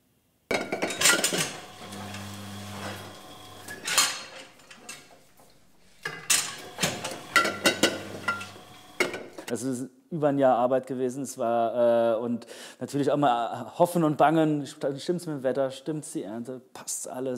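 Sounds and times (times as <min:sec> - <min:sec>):
wine bottles and glasses clinking at a winery: 0:00.5 - 0:09.5
speech: 0:09.5 - 0:17.3.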